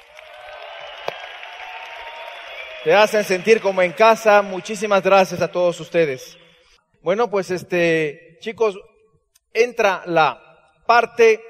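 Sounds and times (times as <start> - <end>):
audience applause: 0.0 - 5.5
speech: 2.8 - 6.4, 7.0 - 8.9, 9.5 - 11.4.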